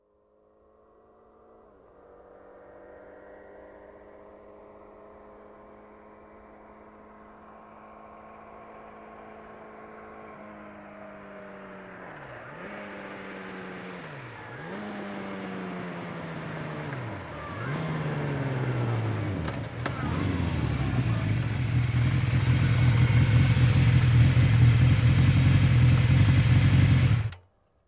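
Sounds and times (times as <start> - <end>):
motorcycle approaching and stopping: 0.2 - 27.5.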